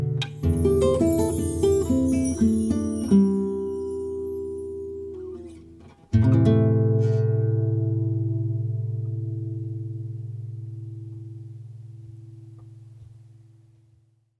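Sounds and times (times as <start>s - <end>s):
guitar solo: 0.2s - 9.6s.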